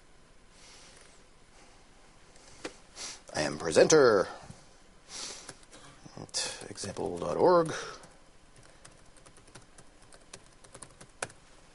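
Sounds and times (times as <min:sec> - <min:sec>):
speech: 0:03.6 - 0:04.4, 0:06.8 - 0:08.0
typing on a computer keyboard to register an account: 0:08.6 - 0:11.4.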